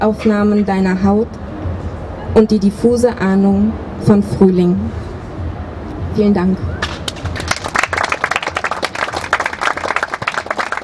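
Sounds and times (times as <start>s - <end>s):
speech: 0.0s - 1.5s, 2.3s - 5.1s, 6.2s - 6.8s
audience applause after a reading: 7.1s - 10.8s.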